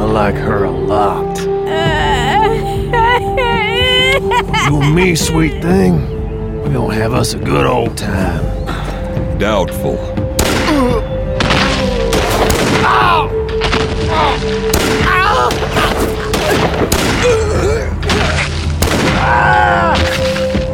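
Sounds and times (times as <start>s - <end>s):
speech: 0.2s - 2.0s, 4.2s - 11.1s
laughter: 3.0s - 6.0s
gunshots in a gunfight between a gang and opponents: 10.4s - 10.8s, 11.4s - 14.0s, 14.7s - 17.3s, 18.1s - 19.4s
people shouting and crying out: 12.7s - 13.4s, 14.0s - 18.4s, 19.1s - 20.2s.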